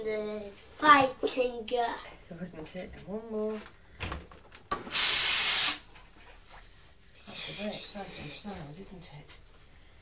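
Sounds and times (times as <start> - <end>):
speech: 0.0 - 4.2, 7.5 - 9.4
steam iron hissing steam: 4.8 - 5.8.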